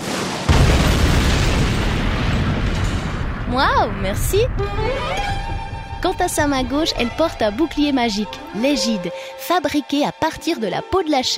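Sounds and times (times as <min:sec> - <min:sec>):
explosion with loud heavy low rumbling roar: 0:00.0 - 0:08.4
speech: 0:03.5 - 0:11.3.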